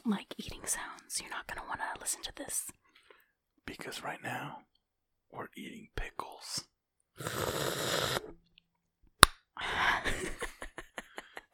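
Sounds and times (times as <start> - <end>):
speech: 0.1 - 2.8, 3.8 - 4.7
sipping water: 7.2 - 8.4
laughter: 9.7 - 11.5.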